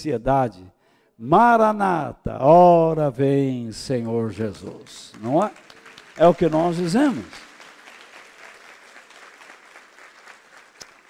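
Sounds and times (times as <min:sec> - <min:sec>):
speech: 0:00.0 - 0:07.5
audience clapping hands: 0:03.9 - 0:11.0.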